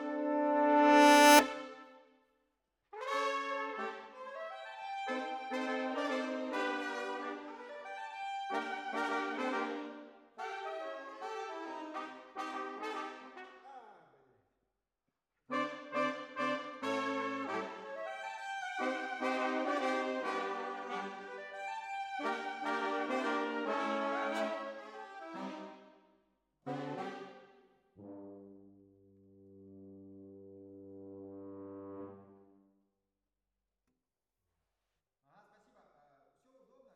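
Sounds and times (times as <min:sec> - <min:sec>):
horns: 0:00.0 - 0:01.9, 0:03.0 - 0:04.2, 0:04.9 - 0:13.8, 0:15.5 - 0:25.8, 0:26.7 - 0:27.4.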